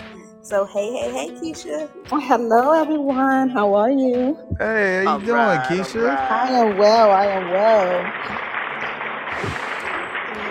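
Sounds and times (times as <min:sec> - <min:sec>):
speech: 0:00.5 - 0:08.5
clapping applause sound effect: 0:05.1 - 0:10.4.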